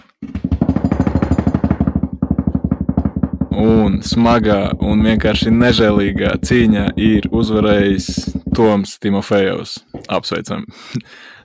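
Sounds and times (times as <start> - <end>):
speech: 0.2 - 0.4, 3.6 - 11.3
drum roll: 0.2 - 8.8.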